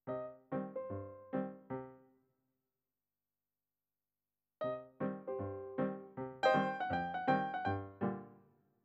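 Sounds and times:
ragtime piano: 0:00.1 - 0:02.0, 0:04.6 - 0:08.4.

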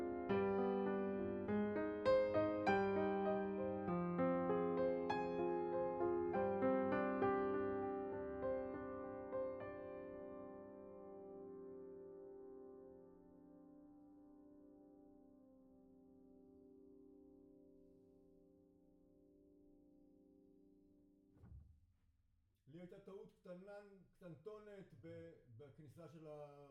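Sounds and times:
piano note B: 0:00.0 - 0:13.4.

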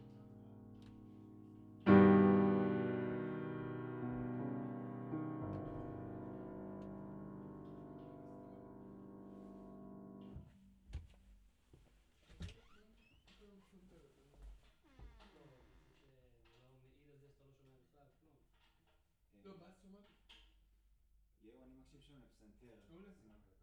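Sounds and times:
low piano: 0:00.0 - 0:10.8.

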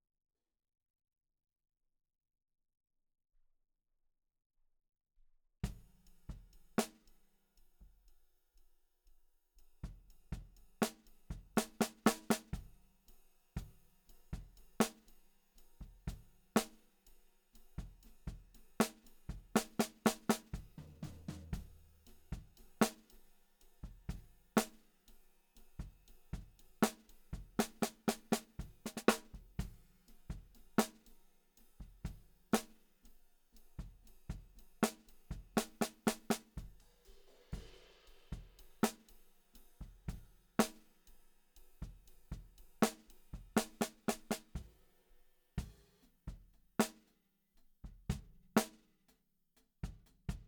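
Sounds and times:
snare drum: 0:05.7 - 0:07.2, 0:09.8 - 0:12.8, 0:13.6 - 0:15.2, 0:17.8 - 0:23.2, 0:23.8 - 0:24.9, 0:25.7 - 0:31.2, 0:31.8 - 0:32.9, 0:33.7 - 0:41.0, 0:41.7 - 0:44.9, 0:45.6 - 0:47.1, 0:47.8 - 0:49.1, 0:49.8 - 0:50.4.

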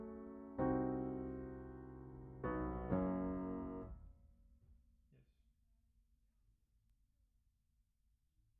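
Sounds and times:
piano: 0:00.0 - 0:04.3.

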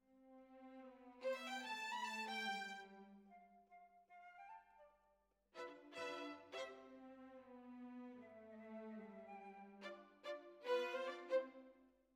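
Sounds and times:
violins: 0:00.3 - 0:03.3, 0:05.6 - 0:11.7.

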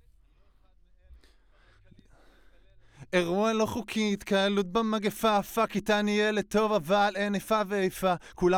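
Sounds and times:
vocals: 0:00.0 - 0:08.5.

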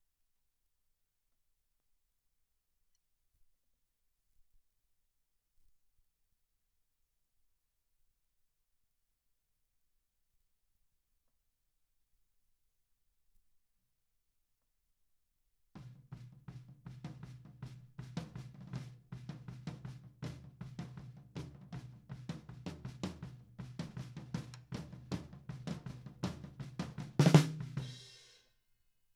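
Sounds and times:
snare drum recorded from the top: 0:15.8 - 0:28.4.

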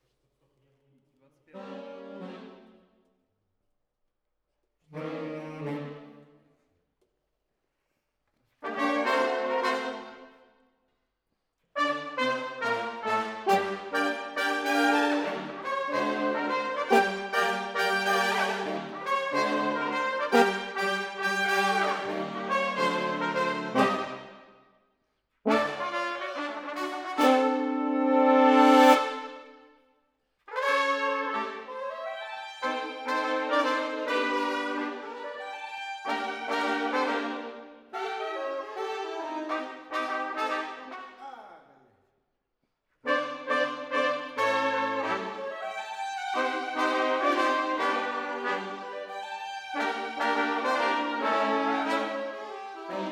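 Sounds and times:
horns playing: 0:01.6 - 0:02.7, 0:08.6 - 0:10.3, 0:11.8 - 0:24.5, 0:25.5 - 0:29.6, 0:30.5 - 0:41.4, 0:43.0 - 0:53.1.

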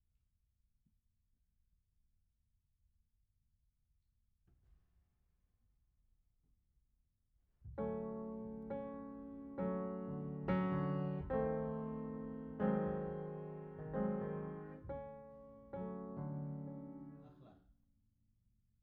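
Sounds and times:
piano: 0:07.6 - 0:17.6.

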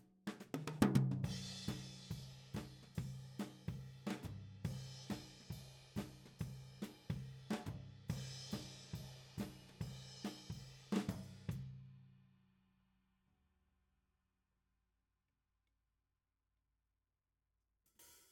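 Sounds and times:
tom drum: 0:00.3 - 0:11.6.

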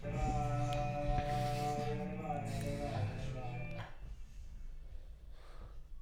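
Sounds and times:
vocals: 0:00.0 - 0:05.0.

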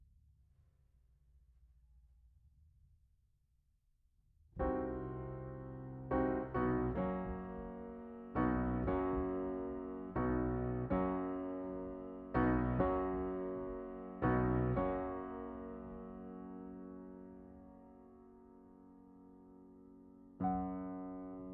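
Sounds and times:
piano: 0:04.6 - 0:21.5.

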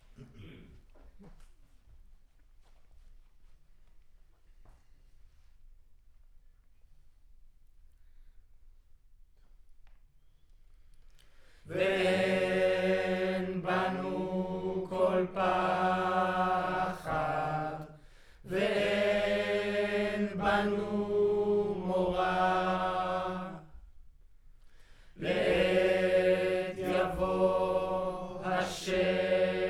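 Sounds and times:
choir recorded with center U47 microphone: 0:11.7 - 0:24.0, 0:25.2 - 0:29.6.

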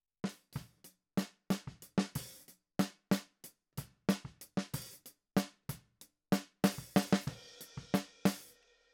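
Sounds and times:
snare drum: 0:00.3 - 0:03.3, 0:04.1 - 0:05.7, 0:06.4 - 0:08.5.

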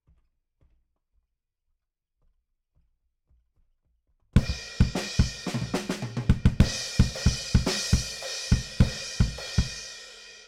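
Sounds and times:
bass drum: 0:04.4 - 0:10.0.

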